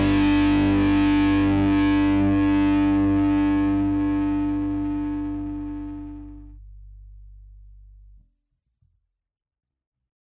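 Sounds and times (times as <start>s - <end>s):
intro instrumental music: 0.0s - 6.5s.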